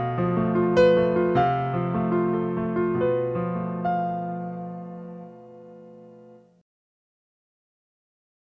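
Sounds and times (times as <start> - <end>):
solo piano: 0.0 - 6.6.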